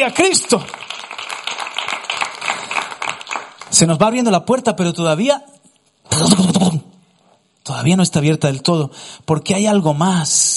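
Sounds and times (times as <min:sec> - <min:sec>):
speech: 0:00.0 - 0:00.9, 0:03.7 - 0:05.5, 0:06.1 - 0:06.8, 0:07.8 - 0:10.5
audience applause: 0:00.0 - 0:03.9.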